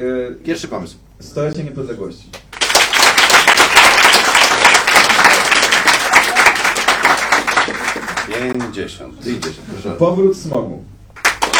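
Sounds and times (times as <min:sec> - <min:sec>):
speech: 0:00.0 - 0:02.4, 0:08.4 - 0:11.0
audience applause measured by clap meter: 0:02.5 - 0:08.7, 0:11.2 - 0:11.5.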